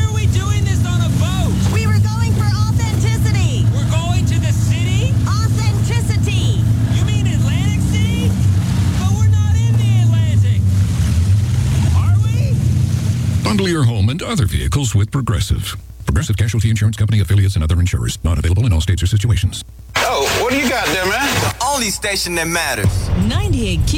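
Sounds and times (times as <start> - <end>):
boat engine rumble: 0.0 - 17.5
wind and water noise: 7.8 - 13.5
speech: 14.3 - 19.9, 20.5 - 23.9.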